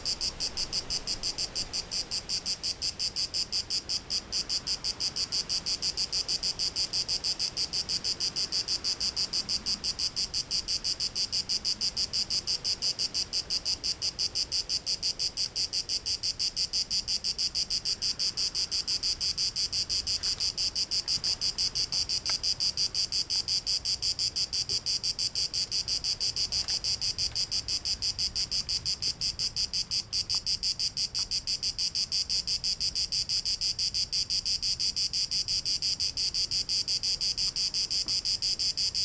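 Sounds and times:
cicadas chirping in Greece: 0:00.0 - 0:39.0.

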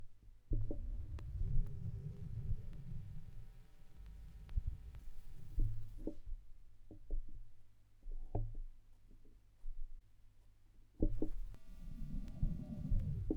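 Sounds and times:
vinyl record noise: 0:00.6 - 0:06.1, 0:11.1 - 0:13.3.

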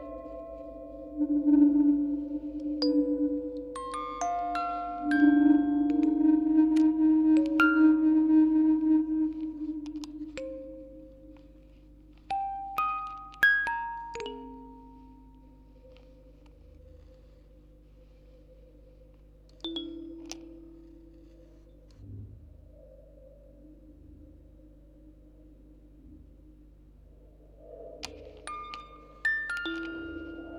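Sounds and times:
quartet of music boxes playing on tape: 0:00.0 - 0:16.5, 0:19.5 - 0:22.0, 0:28.2 - 0:30.5.

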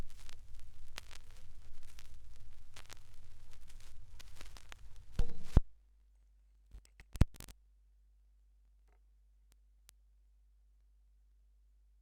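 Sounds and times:
vinyl record noise: 0:00.0 - 0:05.7, 0:06.8 - 0:07.5.

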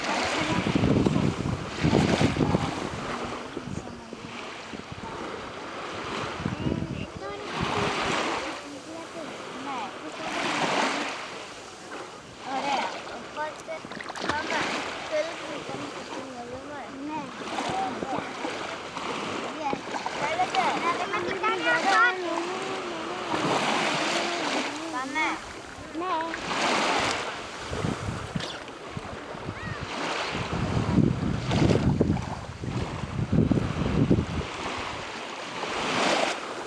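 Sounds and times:
beach ambience in Greece: 0:00.0 - 0:36.6.

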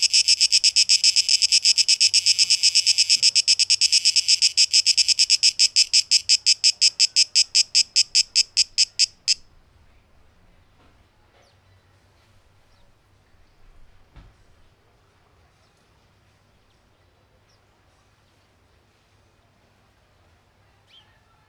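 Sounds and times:
cicada song: 0:00.0 - 0:09.4.

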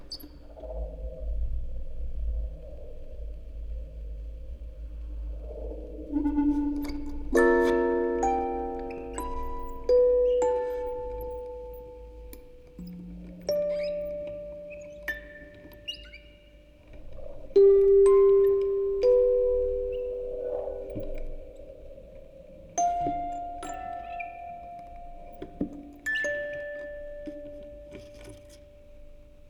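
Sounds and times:
field recording ambience: 0:00.0 - 0:29.4
music box quartet: 0:07.3 - 0:28.6.

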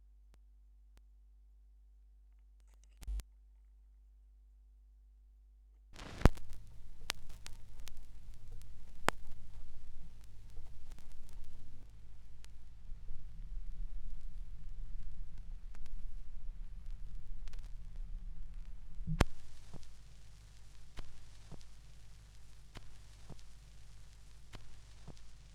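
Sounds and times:
vinyl record noise: 0:03.0 - 0:03.2, 0:06.0 - 0:25.5.

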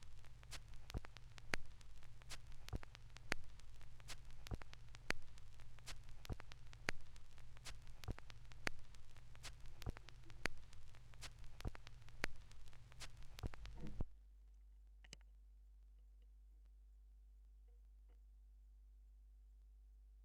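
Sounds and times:
vinyl record noise: 0:00.0 - 0:14.1.

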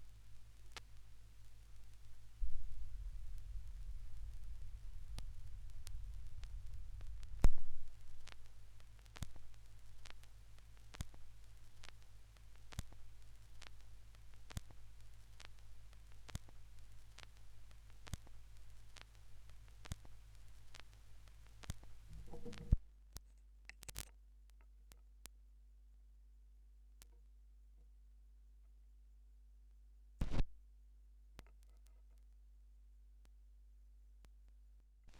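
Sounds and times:
vinyl record crackle: 0:00.0 - 0:25.4, 0:30.2 - 0:30.5.

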